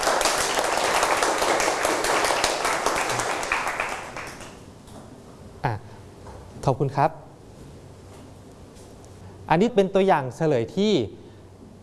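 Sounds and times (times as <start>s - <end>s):
group of students clapping: 0.0s - 4.6s
speech: 6.6s - 7.2s, 9.5s - 11.2s.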